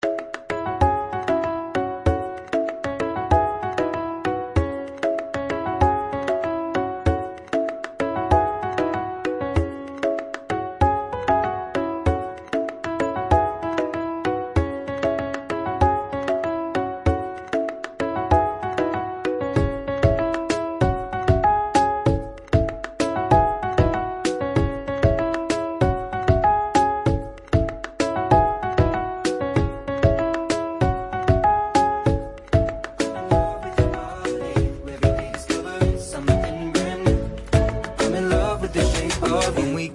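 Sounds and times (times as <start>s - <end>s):
instrumental ringtone music: 0.0s - 39.9s.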